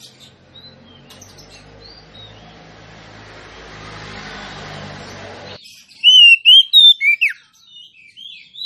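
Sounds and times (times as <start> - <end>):
female Oriental magpie-robin singing rich whistled notes: 5.9 - 8.6.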